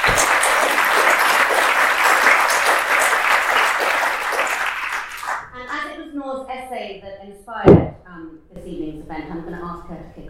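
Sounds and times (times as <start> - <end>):
audience applause welcoming a speaker: 0.0 - 5.5
speech: 9.2 - 10.2.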